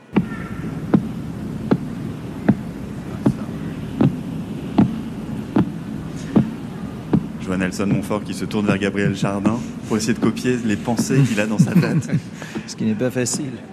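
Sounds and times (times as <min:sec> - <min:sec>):
sonified radio pulses of pulsar PSR 0329+54: 0:00.0 - 0:13.5
low hum and hiss: 0:00.0 - 0:13.7
speech: 0:07.5 - 0:13.7
laughter: 0:08.8 - 0:13.7.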